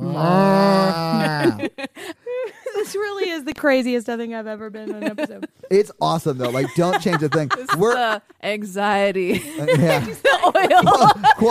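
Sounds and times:
person imitating cow mooing: 0.0s - 1.6s
speech: 0.2s - 0.7s, 1.4s - 2.3s, 2.9s - 11.4s
laughter: 0.6s - 3.2s, 4.9s - 8.2s, 9.3s - 11.4s.

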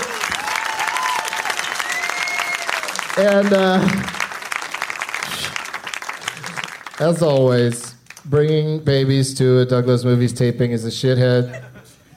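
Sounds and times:
audience applause: 0.0s - 7.8s
speech: 3.2s - 4.1s, 7.0s - 11.7s.

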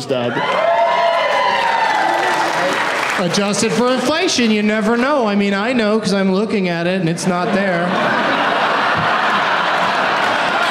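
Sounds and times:
speech: 0.0s - 0.7s, 2.6s - 8.4s
audience applause: 0.3s - 5.1s, 8.0s - 10.6s
laughter: 7.1s - 10.6s.

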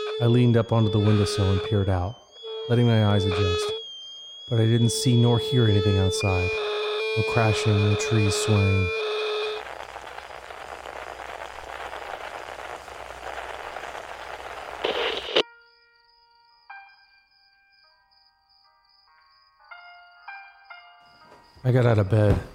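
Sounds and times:
speech: 0.2s - 3.8s, 4.5s - 9.1s, 21.7s - 22.5s
classical music playing from a radio: 14.8s - 15.5s.

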